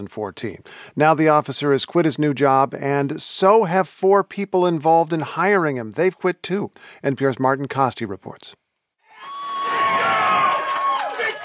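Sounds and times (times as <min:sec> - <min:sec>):
speech: 0:00.0 - 0:08.6
crowd shouting at a public meeting: 0:09.2 - 0:11.4.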